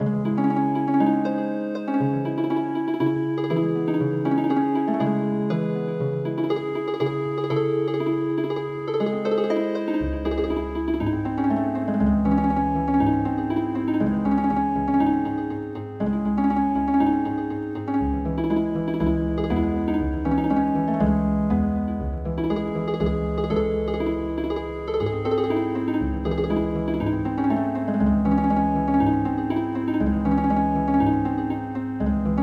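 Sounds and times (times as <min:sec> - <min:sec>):
healing harp music: 0:00.0 - 0:32.4.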